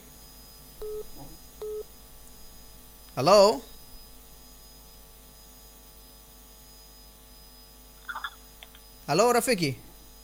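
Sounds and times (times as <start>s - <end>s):
electronic telephone beeps on a radio call-in line: 0.8s - 1.8s
low steady phone line hiss: 0.8s - 1.9s
speech: 3.2s - 3.7s, 9.1s - 9.9s.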